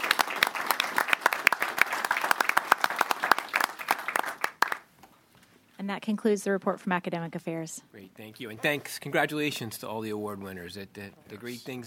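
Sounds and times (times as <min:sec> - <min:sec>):
audience round of applause: 0:00.0 - 0:04.9
speech: 0:05.8 - 0:11.8.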